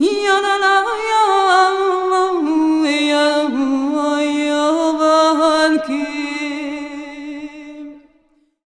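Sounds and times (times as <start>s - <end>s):
Balkan-style traditional vocals: 0.0s - 8.4s.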